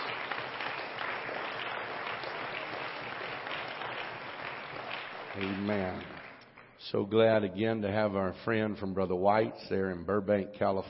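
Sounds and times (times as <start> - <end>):
audience clapping: 0.0 - 6.8
speech: 5.4 - 6.2, 6.8 - 10.8.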